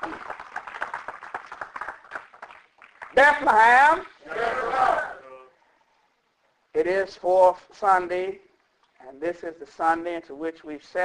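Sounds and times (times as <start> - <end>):
audience applause: 0.0 - 4.2
speech: 3.2 - 4.6, 6.8 - 8.4, 9.1 - 11.0.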